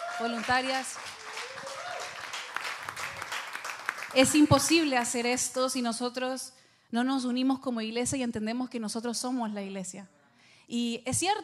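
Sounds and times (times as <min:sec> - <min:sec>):
crowd applauding volunteers: 0:00.0 - 0:04.9
speech: 0:00.2 - 0:01.2, 0:04.1 - 0:11.4.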